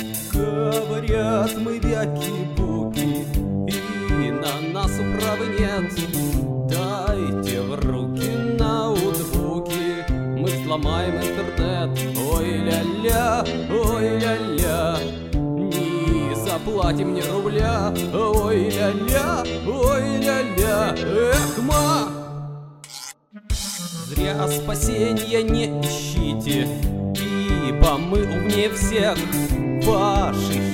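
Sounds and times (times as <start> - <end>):
karaoke singing: 0.2 - 22.4, 23.4 - 30.7.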